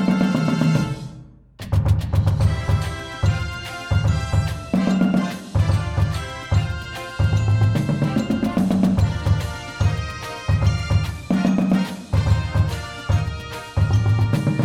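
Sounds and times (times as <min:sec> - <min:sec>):
bass with music: 0:00.0 - 0:14.6
drumline drumming: 0:00.0 - 0:14.6.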